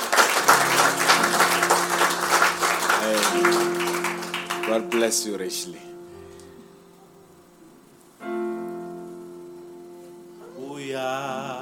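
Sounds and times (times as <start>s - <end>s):
crowd applause: 0.0s - 5.5s
speech: 4.7s - 5.9s.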